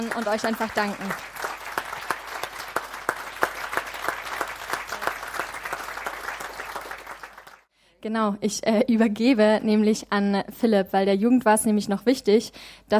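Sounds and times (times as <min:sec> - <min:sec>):
crowd clapping: 0:00.0 - 0:07.7
speech: 0:00.1 - 0:01.3, 0:08.0 - 0:12.9.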